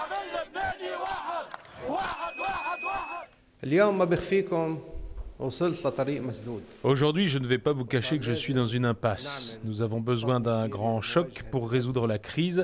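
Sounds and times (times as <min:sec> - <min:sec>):
street crowd cheering: 0:00.0 - 0:03.4
speech: 0:03.6 - 0:12.6.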